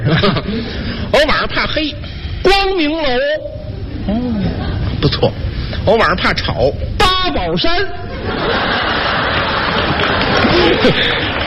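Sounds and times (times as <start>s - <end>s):
laughter: 0.0s - 0.9s, 4.0s - 5.0s, 8.0s - 11.4s
speech: 0.2s - 4.4s, 5.0s - 9.1s, 10.6s - 11.2s
audience applause: 8.5s - 11.4s.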